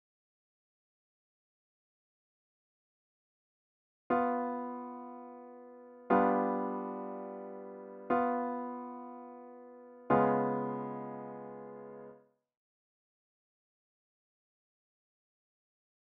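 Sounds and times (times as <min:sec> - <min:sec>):
music with tritone pivot: 0:04.1 - 0:12.4.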